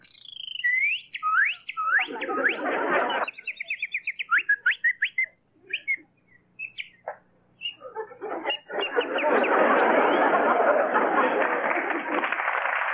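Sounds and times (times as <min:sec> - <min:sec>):
person whistling bird imitations: 0:00.0 - 0:02.6, 0:03.2 - 0:07.0
laughter: 0:02.0 - 0:03.6, 0:07.1 - 0:12.9
loud applause: 0:09.3 - 0:12.9.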